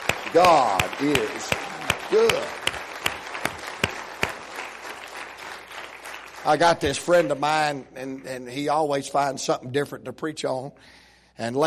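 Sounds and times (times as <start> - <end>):
crowd applause: 0.0 - 7.4
speech: 0.3 - 2.8, 6.4 - 11.6.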